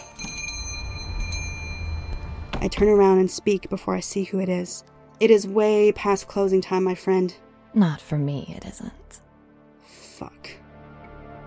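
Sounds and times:
shop bell jingling: 0:00.0 - 0:02.6
shop door opening: 0:00.2 - 0:03.1
speech: 0:02.6 - 0:09.0, 0:10.2 - 0:10.6.

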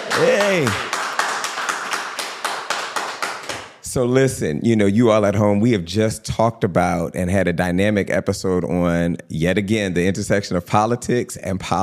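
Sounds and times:
hands clapping in a quick steady rhythm: 0:00.0 - 0:03.8
speech: 0:00.2 - 0:00.9, 0:03.9 - 0:11.8.

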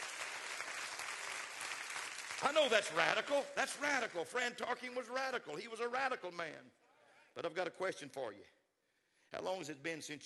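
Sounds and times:
audience clapping: 0:00.0 - 0:04.1
speech: 0:02.4 - 0:06.8, 0:07.4 - 0:08.6, 0:09.3 - 0:10.2.

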